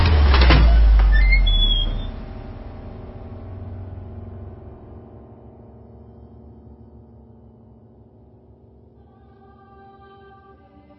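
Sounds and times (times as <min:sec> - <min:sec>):
door creaking open: 0:00.0 - 0:02.3
heavy low rumble: 0:00.0 - 0:06.8.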